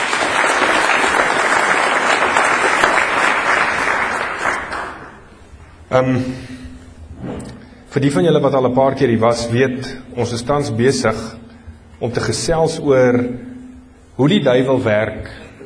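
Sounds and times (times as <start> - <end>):
audience applause: 0.0 - 5.2
speech: 5.9 - 6.5, 7.9 - 11.4, 12.0 - 13.5, 14.2 - 15.5.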